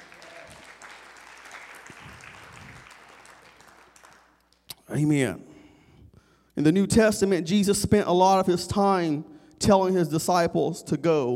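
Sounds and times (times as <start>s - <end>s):
audience hand clapping: 0.0s - 4.9s
speech: 4.9s - 5.5s, 6.6s - 11.3s.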